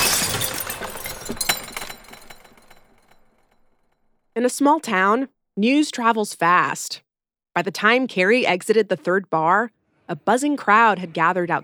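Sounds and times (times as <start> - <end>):
mirror glass shattering: 0.0 - 3.6
speech: 4.4 - 7.0, 7.6 - 11.6.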